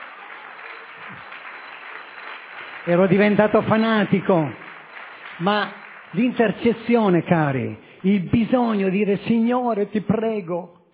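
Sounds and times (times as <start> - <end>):
audience applause at a religious gathering in honour of a mother: 0.0 - 7.7
speech: 2.8 - 4.6, 5.4 - 10.9.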